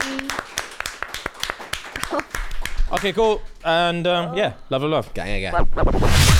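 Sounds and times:
round of applause: 0.0s - 3.2s
speech: 2.9s - 6.3s.

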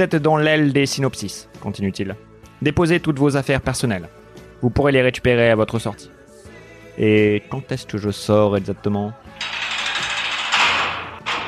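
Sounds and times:
speech: 0.0s - 6.2s, 7.0s - 9.5s
heavy metal prison door rolling shut: 9.4s - 11.4s.

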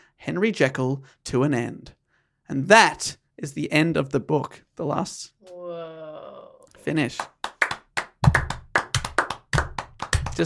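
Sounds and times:
speech: 0.2s - 6.0s, 6.8s - 7.3s
hands clapping: 6.9s - 10.4s.

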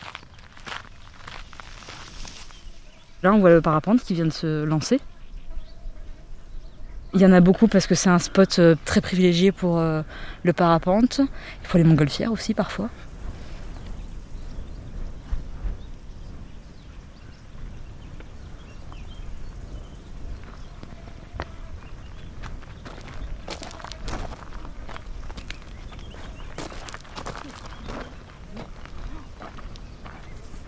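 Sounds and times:
footsteps on red volcanic rock at crater rim: 0.0s - 3.2s, 17.5s - 30.6s
speech: 3.2s - 5.1s, 7.2s - 13.1s.

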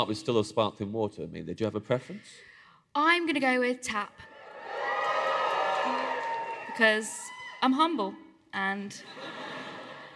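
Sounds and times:
speech: 0.0s - 4.8s, 6.8s - 9.4s
audience in Manchester cheering and whooping: 4.3s - 7.7s
laughter: 9.0s - 10.1s.

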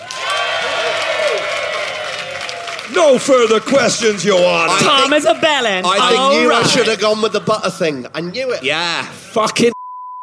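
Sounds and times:
audience applause: 0.0s - 7.0s
voices calling out: 0.0s - 9.4s
speech: 3.0s - 9.7s.

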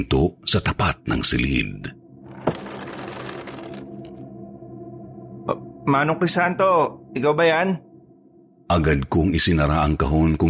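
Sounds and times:
speech: 0.0s - 2.6s, 5.5s - 7.9s, 8.7s - 10.4s
metal chain scraping and rattling across a floor: 2.3s - 4.1s.

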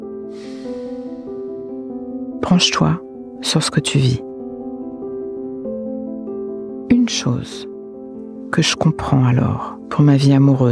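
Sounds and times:
long soft exhalation: 0.3s - 1.6s
speech: 2.5s - 4.3s, 7.1s - 7.7s, 8.5s - 10.7s.

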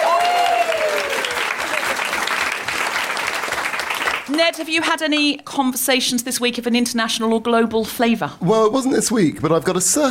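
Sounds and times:
audience applause: 0.0s - 4.4s
speech: 4.3s - 10.0s.

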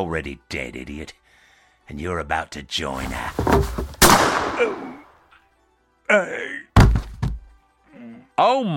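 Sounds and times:
speech: 0.0s - 1.3s, 1.9s - 5.1s, 6.1s - 6.7s, 8.0s - 8.7s
gunshots in a radio drama: 4.0s - 5.1s.

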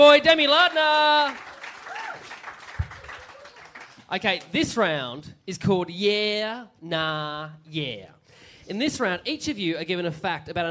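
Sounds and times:
speech: 0.0s - 1.5s, 4.1s - 10.7s
audience applause: 0.6s - 4.0s.

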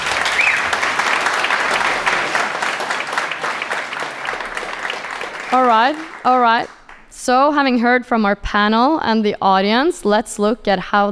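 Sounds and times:
audience clapping: 0.0s - 7.2s
speech: 5.5s - 11.1s.

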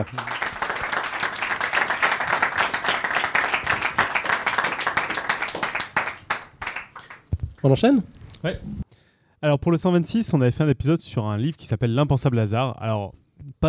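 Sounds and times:
speech: 0.0s - 0.3s, 7.6s - 8.8s, 9.4s - 13.6s
audience applause: 0.0s - 7.3s.

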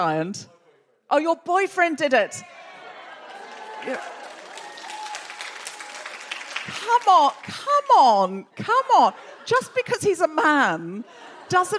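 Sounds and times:
speech: 0.0s - 2.6s, 3.8s - 4.2s, 6.6s - 11.7s
audience cheering: 2.4s - 7.5s
laughter: 2.5s - 4.5s, 8.6s - 11.7s.

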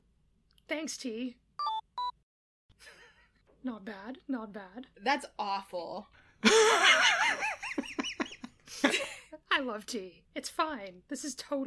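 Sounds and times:
speech: 0.7s - 1.4s, 3.6s - 7.5s, 8.7s - 11.6s
smartwatch beeps: 1.6s - 2.2s.

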